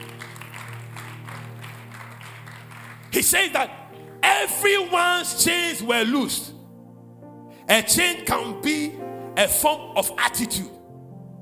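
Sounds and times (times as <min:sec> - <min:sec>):
crowd clapping: 0:00.0 - 0:04.0
speech: 0:03.1 - 0:06.6, 0:07.7 - 0:10.8.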